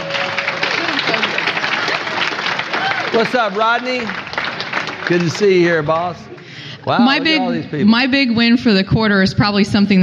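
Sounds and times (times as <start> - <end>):
audience applause at a company gathering: 0.0 - 7.1
people cheering: 0.0 - 7.7
speech: 3.1 - 4.2, 5.1 - 10.0.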